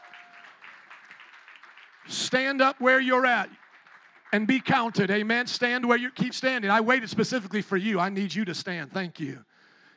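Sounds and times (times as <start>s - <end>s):
church congregation clapping: 0.0s - 5.8s
speech: 2.0s - 3.6s, 4.3s - 9.9s.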